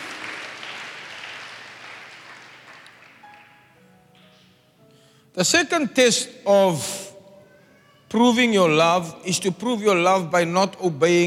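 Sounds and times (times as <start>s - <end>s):
crowd clapping: 0.0s - 4.4s
speech: 5.4s - 7.0s, 8.1s - 11.2s.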